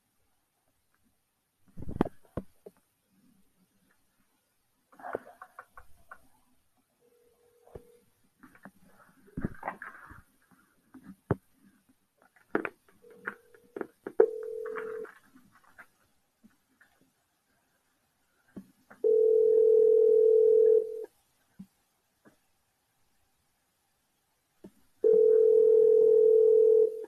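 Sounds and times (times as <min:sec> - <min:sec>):
phone ringback tone: 0:13.0 - 0:15.1, 0:19.0 - 0:21.1, 0:25.0 - 0:27.0.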